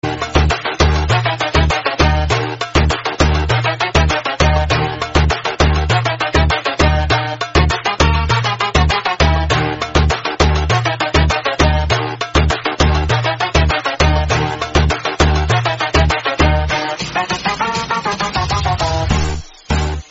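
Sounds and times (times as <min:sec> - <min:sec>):
Arabic trap music: 0:00.0 - 0:20.1.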